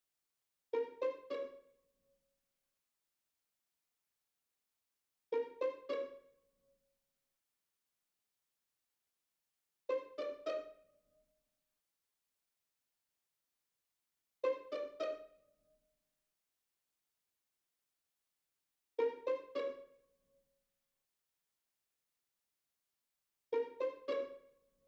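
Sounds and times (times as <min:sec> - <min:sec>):
full high strings playing pizzicato: 0:00.8 - 0:01.6, 0:05.4 - 0:06.2, 0:09.9 - 0:10.7, 0:14.4 - 0:15.2, 0:23.6 - 0:24.4.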